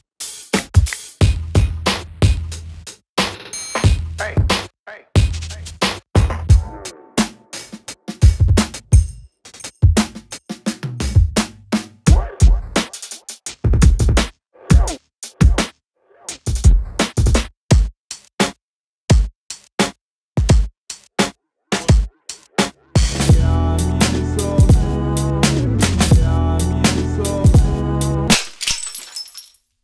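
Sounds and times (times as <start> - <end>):
lo-fi boom bap drum kit: 0.2 - 9.2, 9.8 - 15.7, 16.3 - 17.9, 20.4 - 27.9.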